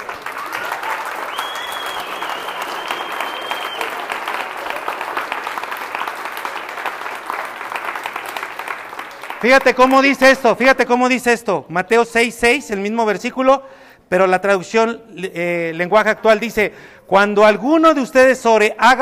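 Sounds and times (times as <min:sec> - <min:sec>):
audience applauding enthusiastically: 0:00.0 - 0:10.2
speech: 0:09.4 - 0:19.0.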